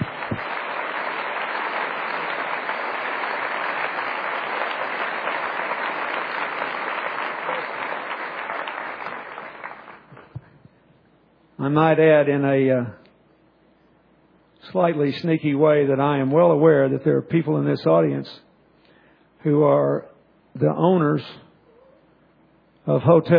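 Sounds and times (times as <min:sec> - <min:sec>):
audience clapping for a fundraising effort: 0:00.0 - 0:10.6
speech: 0:11.6 - 0:13.0, 0:14.7 - 0:18.4, 0:19.4 - 0:21.4, 0:22.9 - 0:23.3.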